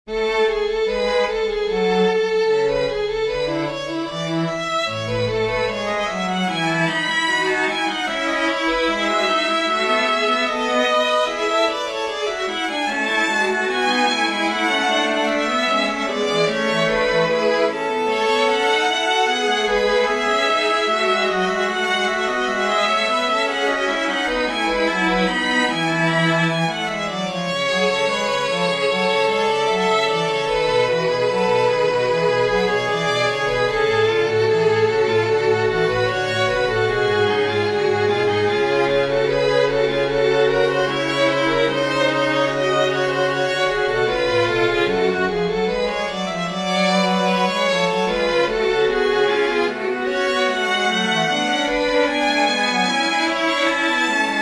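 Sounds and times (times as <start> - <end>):
string trio playing a sinfonia in A major: 0.0 - 54.3.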